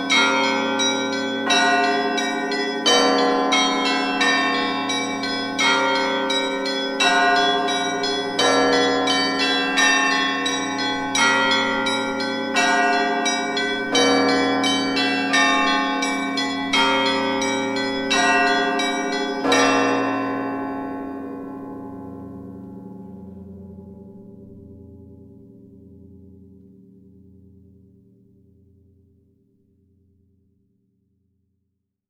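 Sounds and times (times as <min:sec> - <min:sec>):
small prayer service church bell ringing: 0:00.0 - 0:25.2.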